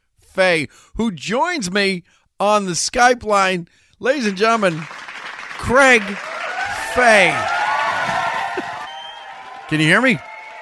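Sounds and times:
speech: 0.4s - 5.0s, 5.6s - 6.3s, 6.9s - 8.7s, 9.7s - 10.3s
clapping: 4.3s - 10.6s.

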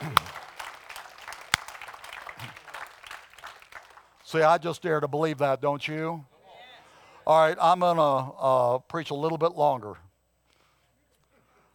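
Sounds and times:
audience clapping: 0.0s - 4.6s
speech: 4.3s - 6.3s, 7.3s - 10.0s.

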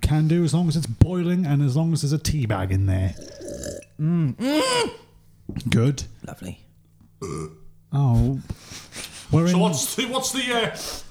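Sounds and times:
speech: 0.1s - 3.4s, 4.0s - 6.6s, 7.2s - 11.0s
burping: 3.0s - 5.2s, 7.2s - 7.8s.

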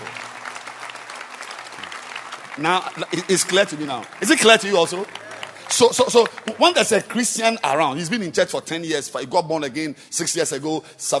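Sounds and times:
audience clapping hands: 0.0s - 8.0s
speech: 2.6s - 11.1s.

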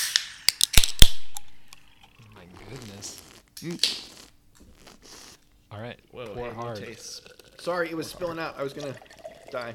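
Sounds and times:
can of nitro Pepsi being popped open: 0.0s - 2.1s, 3.6s - 4.7s
speech: 3.0s - 4.1s, 5.8s - 9.7s.

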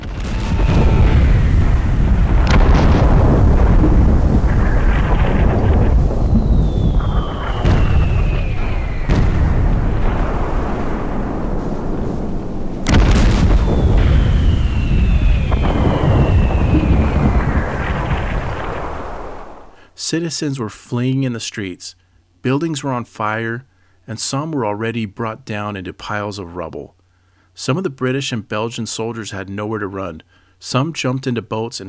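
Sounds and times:
siege gun artillery bombardment: 0.0s - 19.8s
speech: 20.1s - 27.0s, 27.6s - 31.8s.

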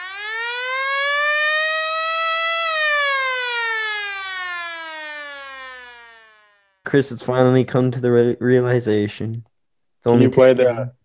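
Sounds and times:
alarm siren wailing: 0.0s - 6.8s
speech: 6.9s - 11.0s.

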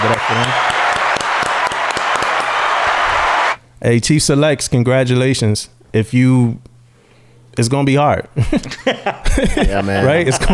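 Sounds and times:
crowd clapping: 0.0s - 3.6s
speech: 0.1s - 0.7s, 3.8s - 6.7s, 7.6s - 10.5s
laughter: 8.4s - 10.5s.

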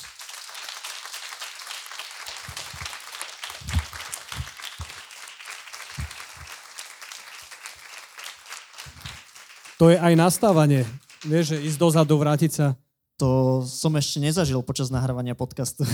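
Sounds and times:
audience applause: 0.0s - 12.1s
speech: 9.8s - 15.9s.

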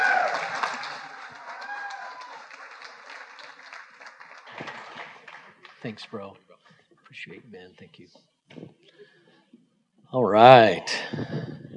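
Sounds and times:
audience applause: 0.0s - 6.2s
speech: 5.8s - 6.5s, 7.1s - 9.0s, 10.1s - 11.4s.

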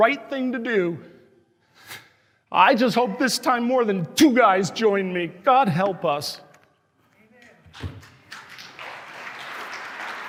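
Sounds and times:
speech: 0.0s - 1.1s, 2.5s - 6.4s, 7.8s - 8.1s
audience applause: 8.2s - 10.2s.

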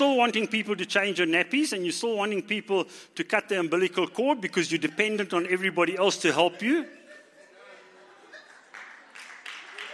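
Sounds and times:
speech: 0.0s - 7.0s
laughter: 6.0s - 9.9s
audience clapping: 8.3s - 9.9s.

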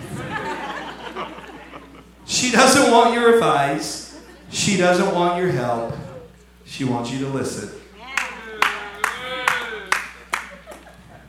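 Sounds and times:
laughter: 0.0s - 6.3s, 8.2s - 11.2s
speech: 2.4s - 6.0s, 6.7s - 7.8s
single hand clap from audience: 8.2s - 10.9s.

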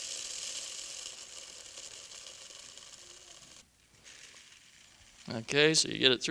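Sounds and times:
wheat grains pouring into a sieve: 0.0s - 5.4s
speech: 5.3s - 6.2s.

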